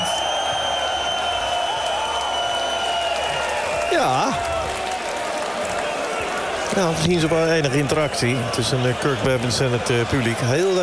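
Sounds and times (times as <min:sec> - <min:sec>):
audience applause: 0:00.0 - 0:10.8
speech: 0:04.0 - 0:04.5, 0:06.8 - 0:10.8.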